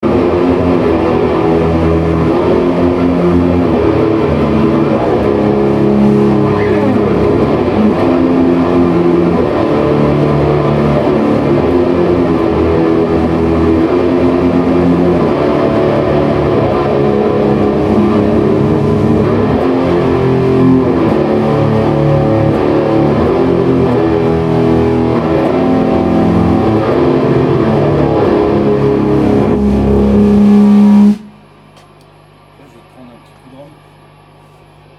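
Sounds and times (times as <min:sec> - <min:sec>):
bouzouki playing: 0:00.2 - 0:31.4.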